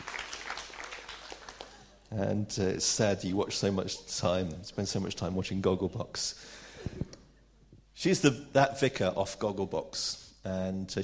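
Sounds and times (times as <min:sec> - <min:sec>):
audience applause: 0:00.0 - 0:01.9
speech: 0:02.1 - 0:07.0, 0:08.0 - 0:11.0.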